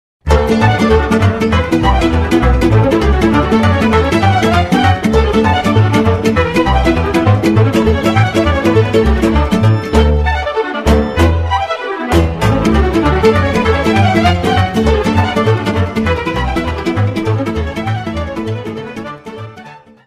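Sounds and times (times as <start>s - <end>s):
concert sirba folk dance music: 0.3s - 20.0s.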